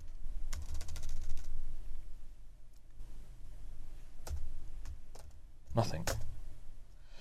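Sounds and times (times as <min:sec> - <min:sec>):
typing on a computer keyboard: 0:00.0 - 0:01.5, 0:04.2 - 0:06.3
speech: 0:05.8 - 0:06.2.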